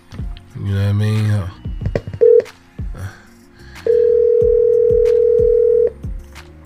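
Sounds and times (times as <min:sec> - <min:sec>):
speech: 0:00.6 - 0:02.1
low thumping beat: 0:01.5 - 0:03.0, 0:03.8 - 0:06.3
telephone dial tone: 0:02.2 - 0:02.5, 0:03.9 - 0:05.9.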